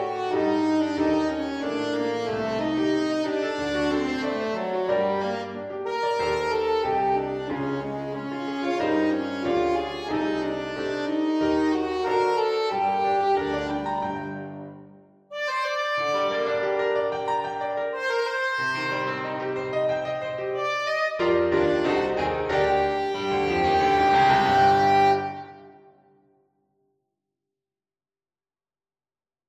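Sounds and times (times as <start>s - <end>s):
strange saxophone playing: 0.0s - 14.5s, 15.3s - 25.9s.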